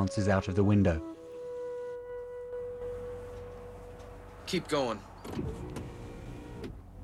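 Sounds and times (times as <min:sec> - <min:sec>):
speech: 0:00.0 - 0:01.2, 0:04.5 - 0:05.9
car starting to move off: 0:02.8 - 0:07.0.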